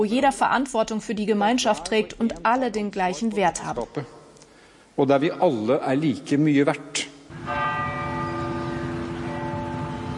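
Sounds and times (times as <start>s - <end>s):
speech: 0.0s - 4.2s, 5.0s - 7.6s
church bells ringing in Norway: 7.3s - 10.1s.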